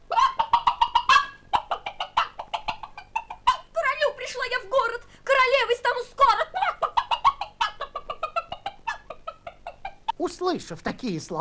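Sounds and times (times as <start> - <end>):
hen clucking in a chicken coop: 0.0 - 4.8, 6.0 - 10.2
speech: 10.4 - 11.4.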